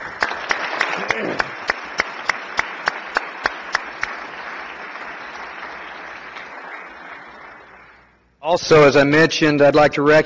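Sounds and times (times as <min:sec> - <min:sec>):
audience applause: 0:00.0 - 0:08.1
speech: 0:01.0 - 0:01.6, 0:08.5 - 0:10.2.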